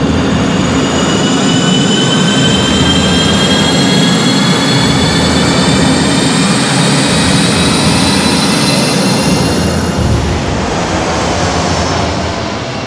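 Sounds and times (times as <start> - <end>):
jet aircraft taking off: 0.0 - 12.8.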